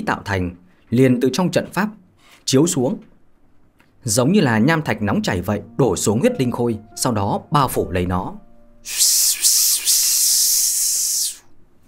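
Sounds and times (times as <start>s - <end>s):
speech: 0.0s - 3.1s, 4.0s - 10.0s
sizzling hiss: 8.8s - 11.4s.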